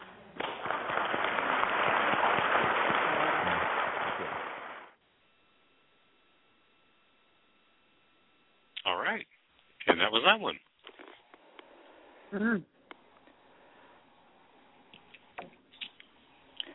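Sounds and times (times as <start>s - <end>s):
audience applause: 0.0s - 5.0s
faint hum: 0.0s - 16.7s
speech: 10.2s - 10.7s, 12.3s - 12.7s.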